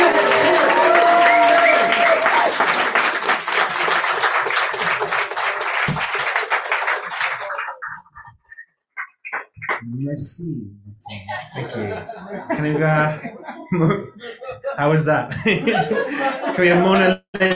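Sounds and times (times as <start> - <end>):
cheering and whoops: 0.0 - 2.7
audience applauding: 0.0 - 9.8
speech: 10.2 - 17.5
laughter: 11.1 - 17.5.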